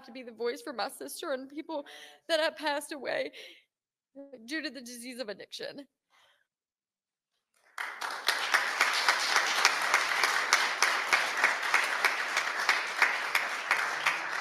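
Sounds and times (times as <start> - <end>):
speech: 0.0 - 3.6, 4.2 - 6.0
audience applause: 7.6 - 14.3.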